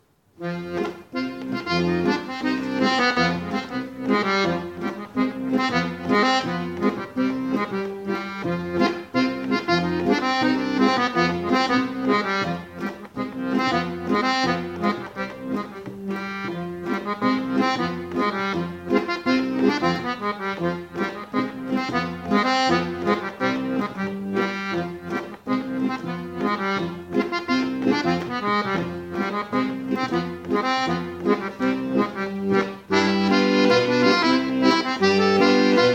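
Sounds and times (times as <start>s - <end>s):
folk dance tune: 0.0s - 35.9s.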